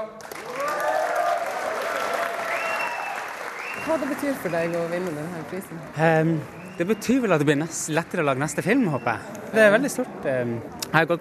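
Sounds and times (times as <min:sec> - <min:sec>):
crowd cheering with whoops and shouts: 0:00.0 - 0:09.2
speech: 0:03.8 - 0:11.1.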